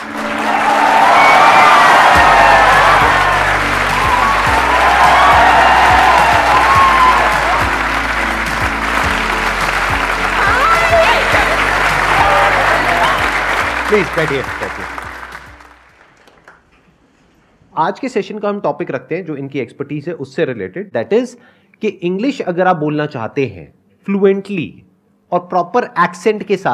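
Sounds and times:
cheers and whoops: 0:00.0 - 0:14.3
low musical drone: 0:00.0 - 0:15.9
large crowd applauding: 0:00.0 - 0:16.7
speech: 0:13.9 - 0:14.6, 0:17.8 - 0:26.7.

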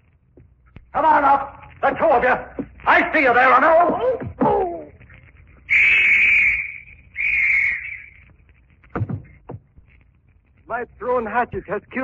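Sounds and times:
speech: 0:01.0 - 0:04.6, 0:10.8 - 0:12.0
police whistle blowing: 0:05.7 - 0:08.2.

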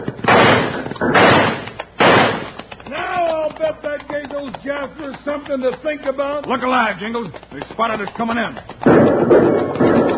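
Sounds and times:
six-gun revolver gunshots in a radio western drama: 0:00.2 - 0:02.6
speech: 0:05.5 - 0:09.9.

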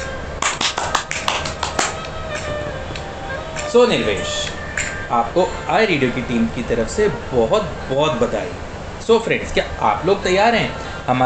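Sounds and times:
loud applause: 0:00.0 - 0:11.2
steady hiss: 0:00.0 - 0:11.2
speech: 0:03.7 - 0:04.5, 0:05.1 - 0:11.2.

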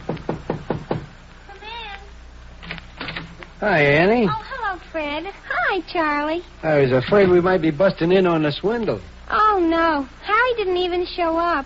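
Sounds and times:
knocking on an apartment door: 0:00.0 - 0:01.2
speech: 0:03.6 - 0:11.6.

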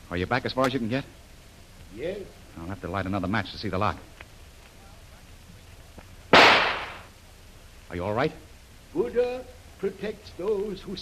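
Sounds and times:
speech: 0:00.1 - 0:01.2, 0:01.9 - 0:04.1, 0:07.9 - 0:11.0
gunshot fired to shoot the lock off an old metal door: 0:06.3 - 0:07.1.

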